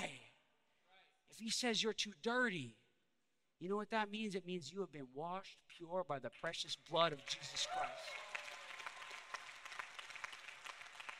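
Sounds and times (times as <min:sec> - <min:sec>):
speech: 0:01.3 - 0:02.8, 0:03.6 - 0:08.2
audience clapping in church: 0:06.4 - 0:11.1.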